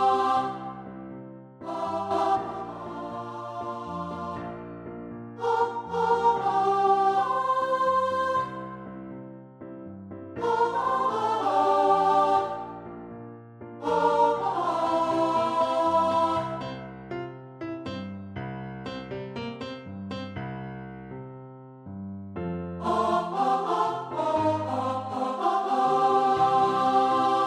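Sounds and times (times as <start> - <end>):
piano: 0.0 - 27.4.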